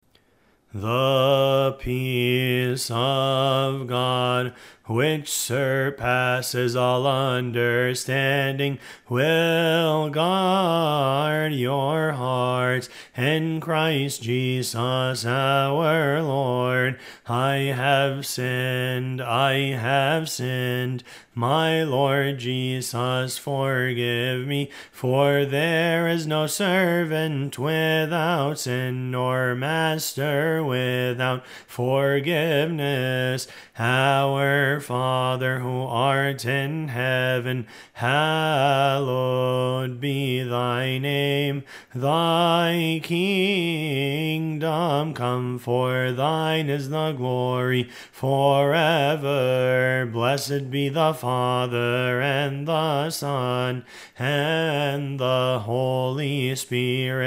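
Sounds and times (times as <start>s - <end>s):
gospel response singing: 0.7s - 57.2s.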